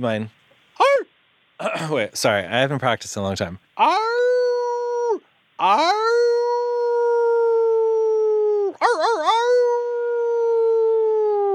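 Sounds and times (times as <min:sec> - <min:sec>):
speech: 0:00.0 - 0:00.4, 0:01.6 - 0:04.2, 0:05.6 - 0:06.2
person imitating a wolf howl: 0:00.8 - 0:01.1, 0:03.8 - 0:11.5.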